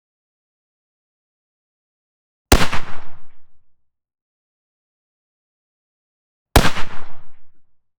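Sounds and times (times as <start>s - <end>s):
Barrett M98B .338 Lapua rifle single shots: 2.5s - 3.4s, 6.6s - 7.5s.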